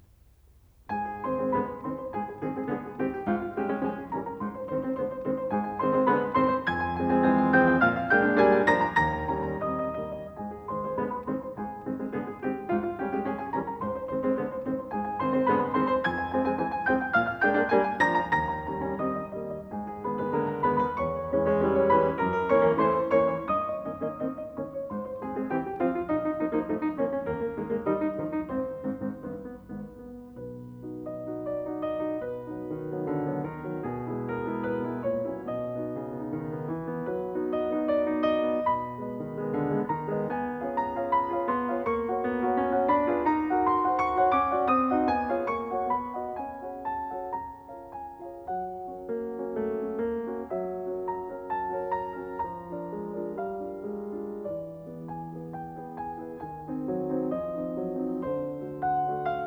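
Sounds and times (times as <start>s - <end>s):
piano piece: 0.0s - 59.4s.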